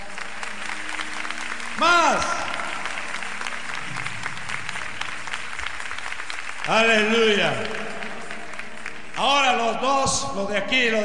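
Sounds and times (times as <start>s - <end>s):
audience applauding: 0.0s - 11.0s
speech: 6.7s - 7.8s, 9.2s - 11.0s.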